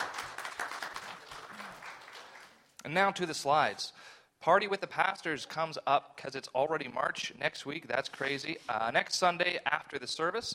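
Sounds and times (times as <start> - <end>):
audience applause: 0.0 - 2.6
speech: 2.8 - 10.5.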